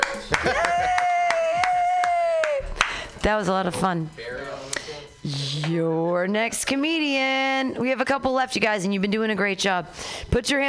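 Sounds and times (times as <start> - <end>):
small audience clapping to welcome a comedian: 0.0 - 3.1
person cheering: 0.3 - 2.8
speech: 3.2 - 4.3, 5.2 - 10.6.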